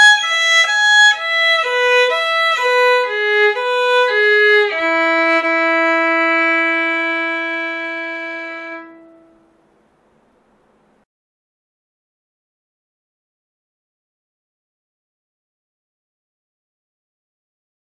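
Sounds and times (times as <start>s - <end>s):
scales and arpeggios in E major: 0.0s - 9.5s.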